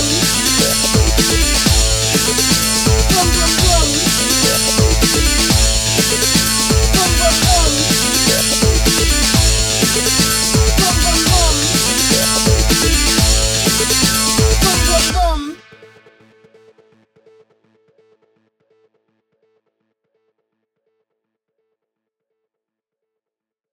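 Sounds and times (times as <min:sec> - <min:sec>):
breakbeat drums: 0:00.0 - 0:15.6.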